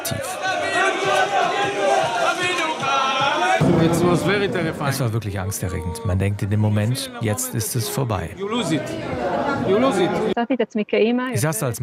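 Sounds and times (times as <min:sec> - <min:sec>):
crowd cheering and shouting in welcome at airport arrival: 0:00.0 - 0:05.0, 0:07.0 - 0:10.4
speech: 0:03.8 - 0:11.8.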